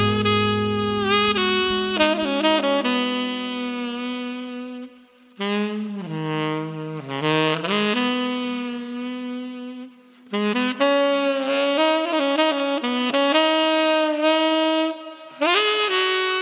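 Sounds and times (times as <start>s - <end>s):
tenor saxophone: 0.0s - 16.4s.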